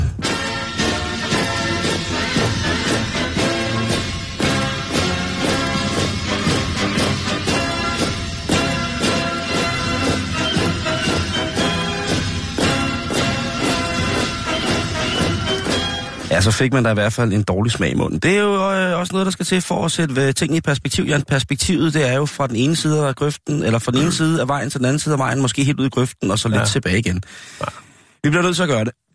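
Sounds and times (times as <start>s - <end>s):
soldiers' boots marching in unison: 0.3s - 16.3s
speech: 16.4s - 29.1s.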